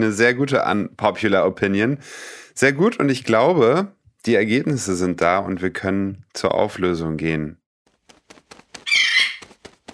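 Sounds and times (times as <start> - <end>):
speech: 0.0 - 7.6
pigeon flying in sound effect: 7.9 - 9.9.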